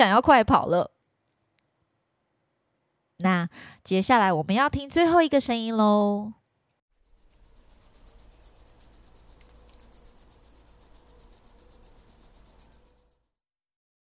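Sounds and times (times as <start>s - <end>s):
speech: 0.0s - 0.9s, 3.2s - 6.4s
cicadas chirping: 6.9s - 13.4s.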